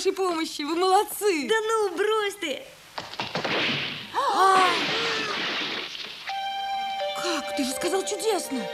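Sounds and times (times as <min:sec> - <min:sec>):
speech: 0:00.2 - 0:02.8, 0:07.6 - 0:08.7
wooden chair breaking apart: 0:03.0 - 0:06.4.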